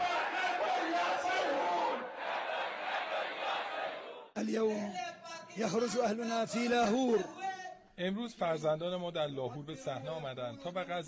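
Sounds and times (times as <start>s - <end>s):
protest crowd chanting slogans: 0.0s - 4.4s
speech: 4.4s - 7.4s, 8.0s - 11.0s.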